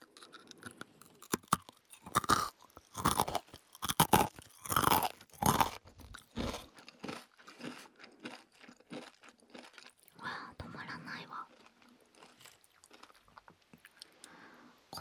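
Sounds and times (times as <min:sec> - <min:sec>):
crunching and chewing nori rice crackers: 0:00.0 - 0:10.4, 0:11.5 - 0:14.4.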